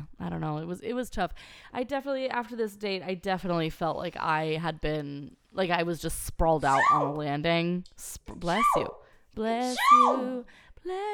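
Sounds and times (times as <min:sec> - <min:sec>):
speech: 0:00.2 - 0:11.1
person sneezing loudly: 0:09.7 - 0:10.3.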